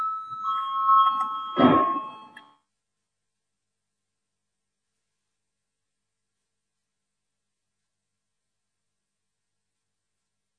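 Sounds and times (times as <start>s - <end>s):
electronic bell calling a vote in a parliament session: 0.0s - 2.6s.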